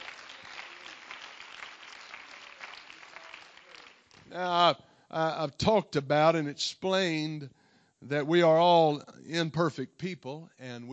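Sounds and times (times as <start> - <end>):
crowd clapping: 0.0 - 4.6
speech: 4.3 - 10.9.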